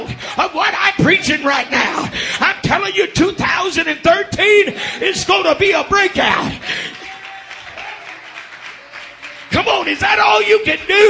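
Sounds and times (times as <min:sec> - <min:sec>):
speech: 0:00.4 - 0:07.0, 0:09.6 - 0:11.0
audience applauding: 0:06.6 - 0:11.0.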